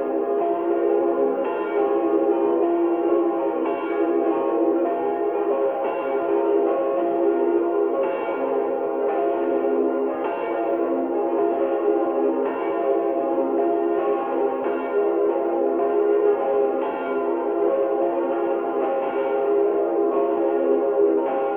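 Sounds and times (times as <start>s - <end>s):
church bells ringing in Eriskirch Mariabrunn: 0.0s - 21.5s.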